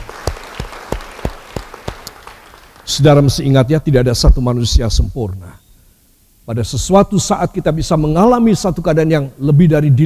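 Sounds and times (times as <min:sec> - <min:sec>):
audience clapping in applause: 0:00.0 - 0:03.4
speech: 0:02.9 - 0:05.6, 0:06.5 - 0:10.0.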